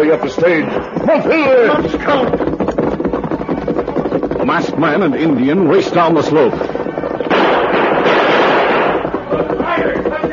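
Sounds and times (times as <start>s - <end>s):
speech: 0.1s - 2.5s, 4.4s - 6.7s
loud dense continuous crackling roar: 0.5s - 10.3s
gunshots being exchanged: 7.2s - 9.6s.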